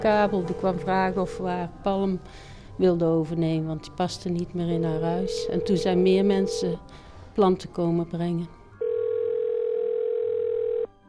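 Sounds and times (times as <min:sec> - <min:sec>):
speech: 0:00.0 - 0:08.6
telephone dial tone: 0:05.3 - 0:06.8, 0:08.8 - 0:10.9.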